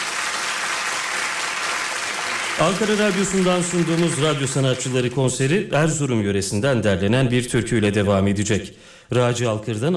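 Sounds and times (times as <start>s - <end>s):
audience applause for a women's choir at a radio artists' concert: 0.0s - 5.5s
speech: 2.6s - 9.9s.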